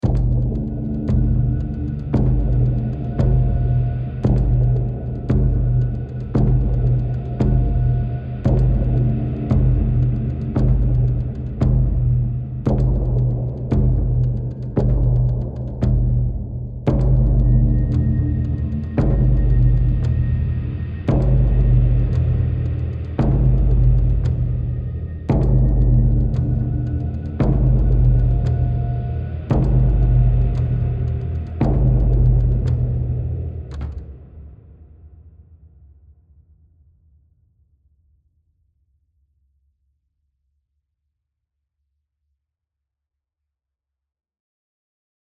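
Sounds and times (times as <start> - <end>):
high tension music: 0.0 - 35.1.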